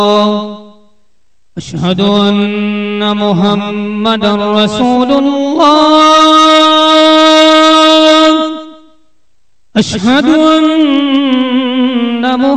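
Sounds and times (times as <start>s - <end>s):
call to prayer: 0.0s - 0.9s, 1.6s - 9.0s, 9.7s - 12.5s.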